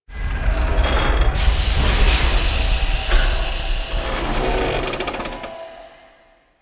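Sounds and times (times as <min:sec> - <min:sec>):
big asteroid ship groaning: 0:00.1 - 0:06.4
ambience: 0:00.1 - 0:06.6.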